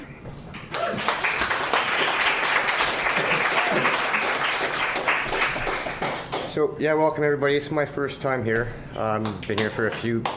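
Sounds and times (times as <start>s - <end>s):
audience applause at a reading night: 0.7s - 6.5s
speech: 6.6s - 10.3s.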